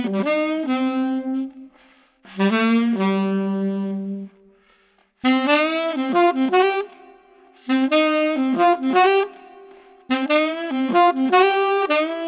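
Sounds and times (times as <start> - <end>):
street tenor saxophone playing expressive blues: 0.0 - 12.2.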